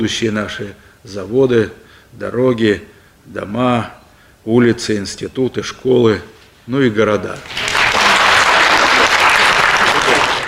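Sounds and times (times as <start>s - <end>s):
speech: 0.0s - 7.6s
crowd applause: 7.4s - 10.4s.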